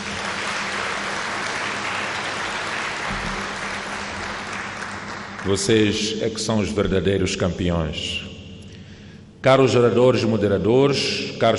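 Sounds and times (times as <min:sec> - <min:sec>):
audience applause: 0:00.0 - 0:05.9
speech: 0:05.4 - 0:08.3, 0:09.4 - 0:11.5.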